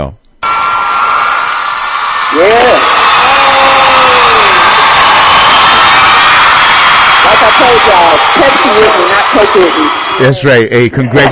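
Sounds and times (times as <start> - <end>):
speech: 0.0 - 0.2, 2.3 - 3.0, 7.6 - 11.3
applause: 0.4 - 10.2
person whooping and cheering: 2.2 - 9.2.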